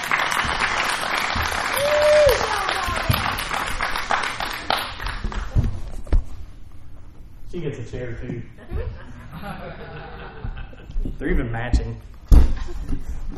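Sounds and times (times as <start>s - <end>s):
audience applause welcoming a guest: 0.0s - 5.5s
shuffling: 0.0s - 13.3s
speech: 7.6s - 10.4s, 11.1s - 12.1s
laughter: 8.6s - 11.2s.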